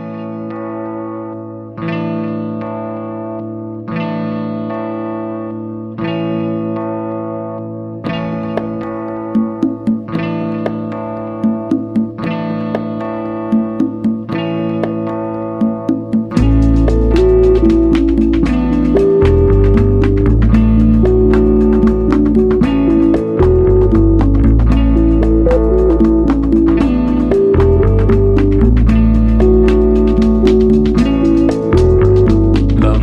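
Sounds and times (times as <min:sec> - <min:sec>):
chorus-drenched electric guitar chords of a rock band cover: 0:00.0 - 0:33.0
rock band playing a cover version: 0:15.8 - 0:33.0.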